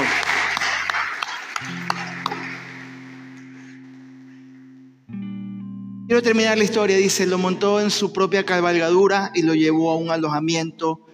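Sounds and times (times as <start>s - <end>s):
audience applause: 0.0s - 4.5s
speech: 6.1s - 11.1s.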